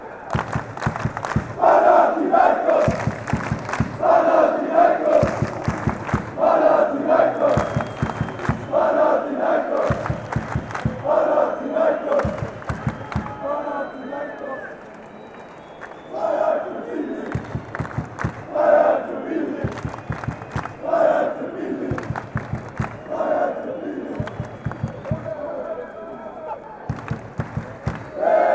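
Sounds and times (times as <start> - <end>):
rapid clapping: 0.3 - 1.6, 2.8 - 4.0, 5.1 - 6.4, 7.4 - 8.7, 9.8 - 11.0, 12.1 - 13.4, 17.3 - 18.5, 19.6 - 20.8, 21.9 - 23.1, 24.2 - 25.3, 26.9 - 28.1
fans chanting: 0.4 - 14.1, 16.0 - 25.9, 26.9 - 28.5.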